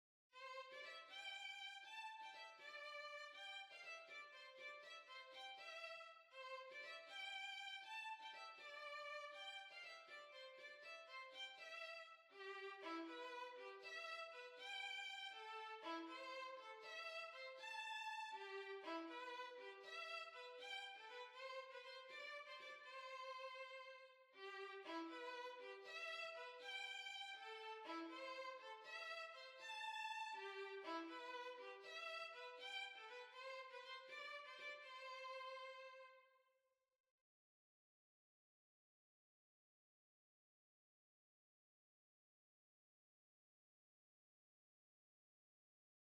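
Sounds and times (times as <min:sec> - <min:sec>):
violin: 0:00.4 - 0:36.2.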